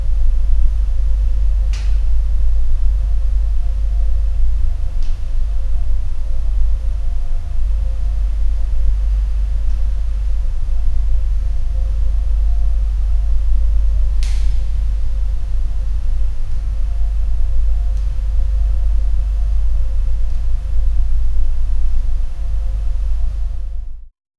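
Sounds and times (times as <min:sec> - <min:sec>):
air vent in cold abandoned hospital: 0:00.2 - 0:23.8.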